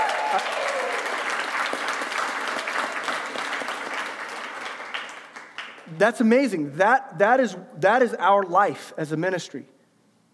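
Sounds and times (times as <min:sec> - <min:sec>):
audience applause: 0:00.0 - 0:05.9
speech: 0:06.0 - 0:09.7.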